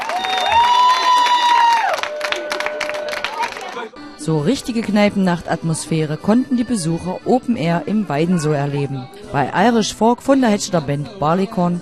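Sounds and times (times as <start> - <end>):
audience applause: 0.0 - 3.9
speech: 4.2 - 11.7.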